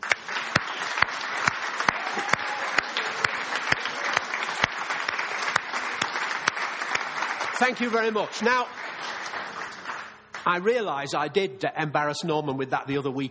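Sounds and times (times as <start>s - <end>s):
round of applause: 0.0s - 10.6s
speech: 7.6s - 9.1s, 10.4s - 13.2s.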